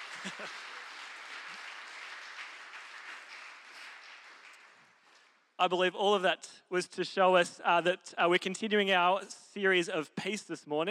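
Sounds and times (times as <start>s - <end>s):
audience applause: 0.0s - 5.2s
speech: 0.2s - 0.7s, 5.6s - 10.9s.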